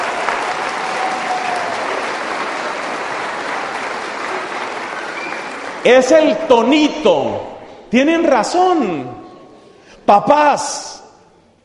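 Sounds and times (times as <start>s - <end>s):
audience applause: 0.0s - 6.4s
speech: 5.8s - 9.2s, 10.1s - 10.9s.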